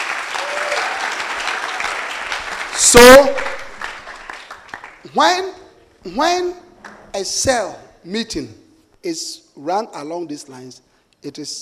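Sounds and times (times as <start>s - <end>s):
audience clapping: 0.0s - 5.1s, 6.8s - 7.1s
speech: 2.9s - 3.4s, 5.2s - 11.6s.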